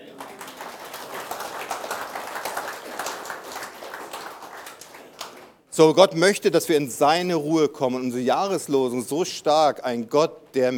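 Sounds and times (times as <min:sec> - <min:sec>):
audience applause: 0:00.0 - 0:05.6
speech: 0:05.8 - 0:10.7.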